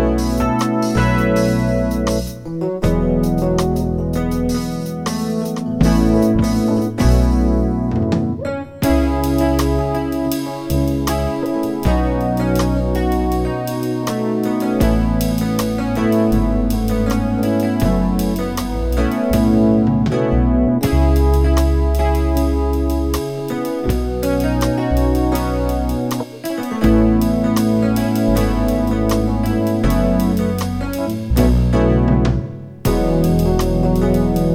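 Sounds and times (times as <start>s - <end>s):
music: 0.0s - 34.5s.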